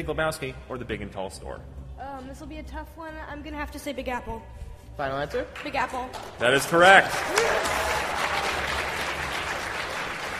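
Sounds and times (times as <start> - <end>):
speech: 0.0 - 8.2
crowd clapping: 5.5 - 10.3.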